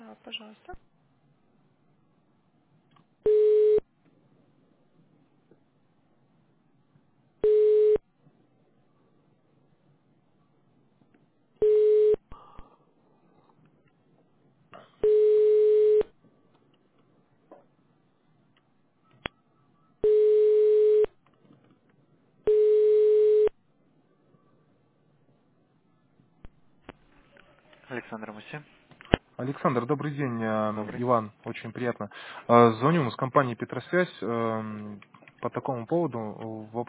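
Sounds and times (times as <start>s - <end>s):
speech: 0.2s - 1.0s, 28.0s - 28.8s, 29.4s - 36.8s
telephone ringback beeps during transfer to technical support: 3.3s - 3.8s, 7.4s - 8.0s, 11.6s - 12.2s, 15.0s - 16.1s, 20.0s - 21.1s, 22.5s - 23.5s.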